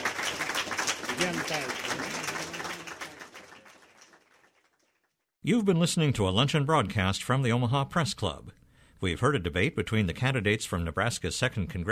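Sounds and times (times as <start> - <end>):
audience applause for congressional debate candidates at an Omaha Press Club luncheon: 0.0 - 5.1
speech: 1.2 - 2.2, 5.4 - 11.9.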